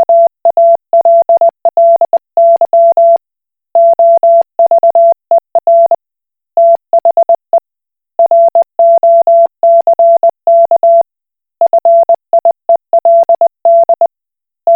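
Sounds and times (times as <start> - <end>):
Koch Morse code beeps: 0.0 - 3.2, 3.8 - 6.0, 6.6 - 7.5, 8.2 - 11.0, 11.6 - 14.1.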